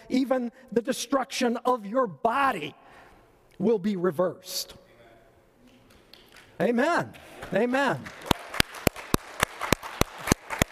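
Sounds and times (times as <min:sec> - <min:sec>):
speech: 0:00.1 - 0:03.0, 0:03.6 - 0:04.8, 0:06.6 - 0:08.3
church congregation clapping during a sermon: 0:05.9 - 0:10.7.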